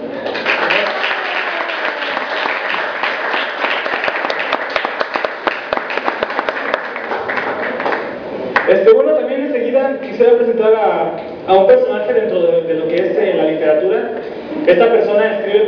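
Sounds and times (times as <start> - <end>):
audience applause: 0.1 - 8.7
speech: 8.7 - 15.6.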